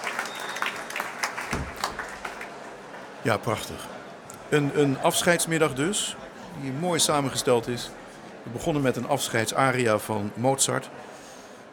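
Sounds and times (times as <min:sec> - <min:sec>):
audience applause: 0:00.0 - 0:03.8
speech: 0:03.2 - 0:11.1.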